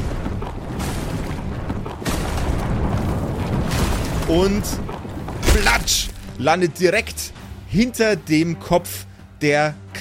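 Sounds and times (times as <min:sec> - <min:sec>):
heavy boulder rolling down a mountain: 0:00.0 - 0:06.4
speech: 0:04.3 - 0:04.9, 0:05.6 - 0:09.9.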